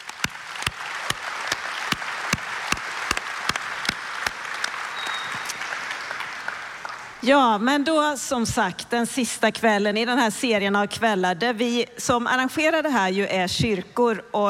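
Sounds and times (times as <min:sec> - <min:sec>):
audience applause: 0:00.0 - 0:07.2
speech: 0:07.2 - 0:14.4.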